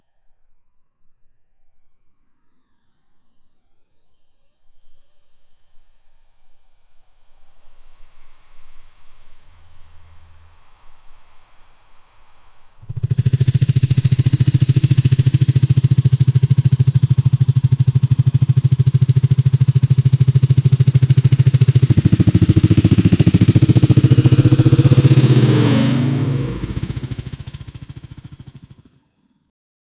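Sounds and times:
demonic sound: 12.9s - 28.8s.

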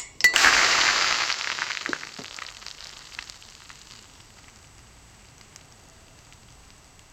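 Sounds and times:
cinematic bubbling: 0.2s - 5.9s.

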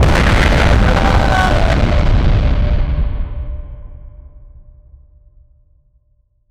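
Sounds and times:
explosion: 0.0s - 4.6s.

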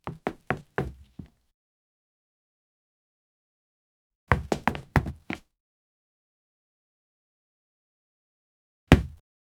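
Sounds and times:
landing feet first on concrete: 4.3s - 5.4s, 8.9s - 9.2s.

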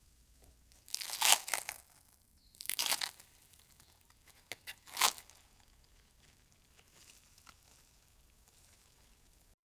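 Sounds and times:
cutting carrot: 0.8s - 2.0s, 4.3s - 5.5s.

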